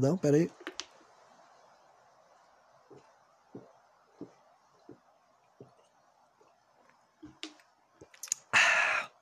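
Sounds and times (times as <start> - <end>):
speech: 0.0 - 0.6
person sipping water: 8.0 - 9.1.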